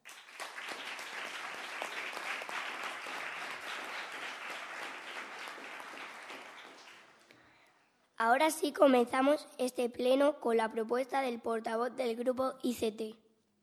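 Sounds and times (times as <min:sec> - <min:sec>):
audience applause: 0:00.0 - 0:07.2
speech: 0:08.2 - 0:13.2.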